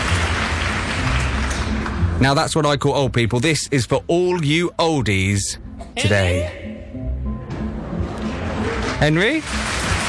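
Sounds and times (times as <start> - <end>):
crowd applause sound effect: 0.0 - 1.9, 8.2 - 10.0
speech: 2.2 - 6.7, 9.0 - 9.7.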